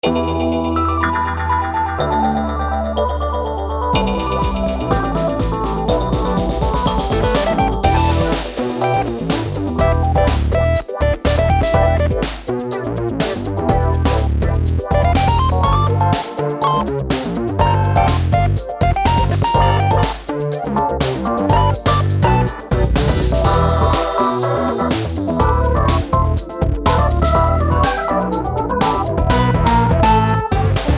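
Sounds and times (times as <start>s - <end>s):
spacey funk music: 0.0s - 30.9s.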